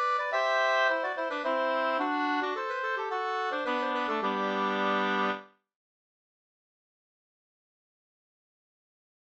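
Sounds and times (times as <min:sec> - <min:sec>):
polska folk dance tune: 0:00.0 - 0:05.4.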